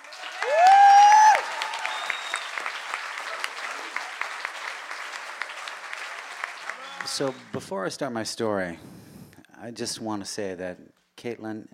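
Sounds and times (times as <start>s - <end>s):
audience applause: 0.0s - 7.7s
loud sustained rising whistle: 0.5s - 2.7s
speech: 7.2s - 9.0s, 9.6s - 11.7s.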